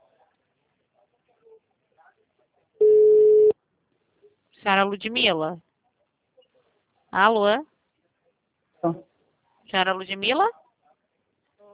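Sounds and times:
telephone tone after a dropped call: 2.8 - 3.5
speech: 4.6 - 5.7, 7.1 - 7.7, 8.8 - 9.1, 9.7 - 10.6.

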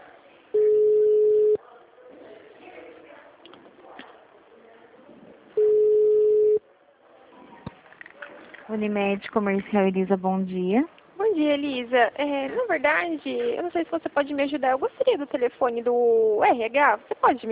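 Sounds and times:
telephone ringback tones during call transfer: 0.6 - 1.6, 5.6 - 6.6
speech: 8.7 - 17.4.

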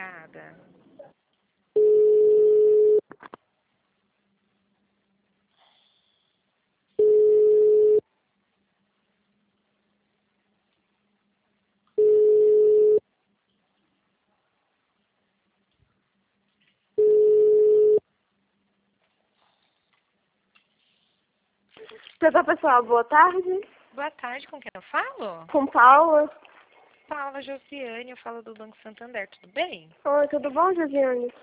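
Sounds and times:
telephone line beeps while a call is transferred: 1.8 - 3.0, 7.0 - 8.0, 12.0 - 13.0, 17.0 - 18.0
speech: 22.2 - 31.4.

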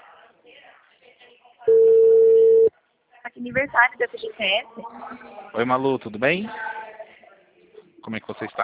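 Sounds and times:
telephone ringback tone: 1.7 - 2.7
speech: 3.4 - 6.8, 8.0 - 8.6.

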